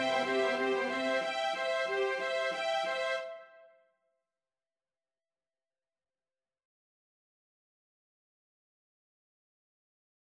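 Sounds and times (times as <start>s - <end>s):
soprano alto tenor bass voices: 0.0s - 3.3s.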